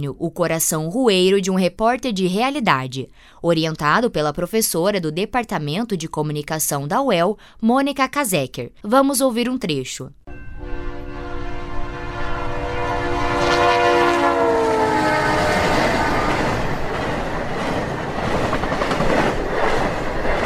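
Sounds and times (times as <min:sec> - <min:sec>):
speech: 0:00.0 - 0:10.4
passing train rumble: 0:10.3 - 0:20.4
diesel locomotive multi-tone horn: 0:10.5 - 0:16.9.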